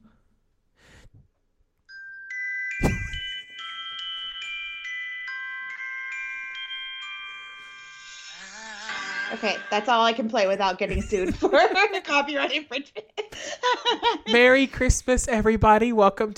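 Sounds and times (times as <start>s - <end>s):
sleigh bells jingling: 1.9s - 12.5s
speech: 9.3s - 16.3s
laughter: 10.9s - 14.5s.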